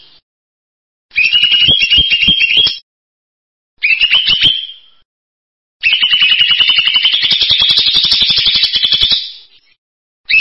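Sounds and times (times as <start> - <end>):
bird song in buzzy trilled phrases: 1.1 - 2.8, 3.8 - 5.0, 5.8 - 10.3.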